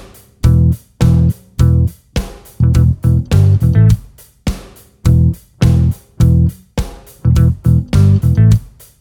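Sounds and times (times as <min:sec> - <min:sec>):
main guitar riff: 0:00.5 - 0:01.9, 0:02.6 - 0:04.0, 0:05.1 - 0:06.6, 0:07.2 - 0:08.6.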